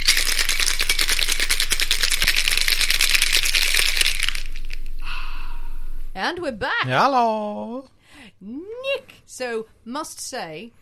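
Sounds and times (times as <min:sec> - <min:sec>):
cocktail shaker rattling ice: 0:00.0 - 0:04.9
speech: 0:06.2 - 0:10.8.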